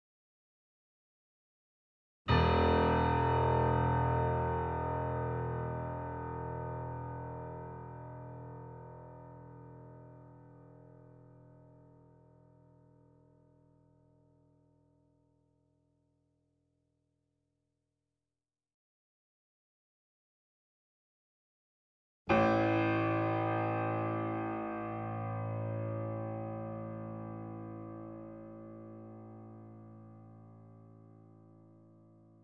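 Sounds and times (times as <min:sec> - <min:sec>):
grand piano notes C1 E1 A1 with effects: 0:02.3 - 0:14.4, 0:22.3 - 0:32.4.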